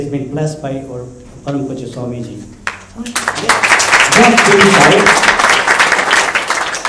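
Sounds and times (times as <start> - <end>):
speech: 0.0 - 5.6
audience clapping hands: 2.6 - 6.8.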